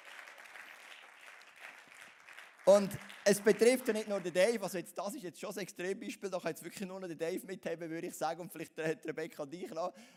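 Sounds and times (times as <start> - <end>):
faint audience clapping honouring a long-serving member: 0.0 - 4.8
speech: 2.7 - 10.1.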